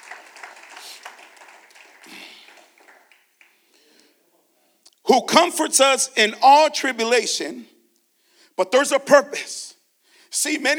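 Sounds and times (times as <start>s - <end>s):
audience clapping: 0.0s - 4.0s
speech: 5.1s - 7.7s, 8.6s - 9.7s, 10.3s - 10.7s.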